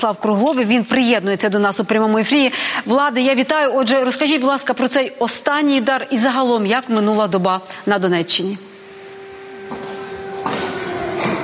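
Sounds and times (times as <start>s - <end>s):
speech: 0.0s - 8.7s
air raid siren: 8.7s - 11.4s.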